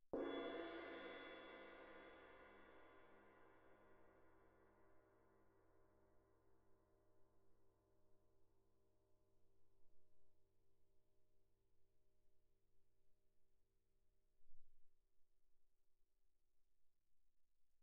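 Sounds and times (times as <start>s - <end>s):
suspended cymbal crash struck with mallet mezzo forte: 0.2s - 3.0s.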